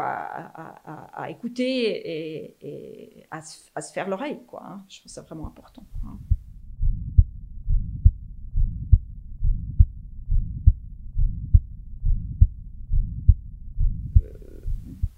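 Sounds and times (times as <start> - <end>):
speech: 0.0 - 6.3
heartbeat heard through a stethoscope: 5.4 - 15.1.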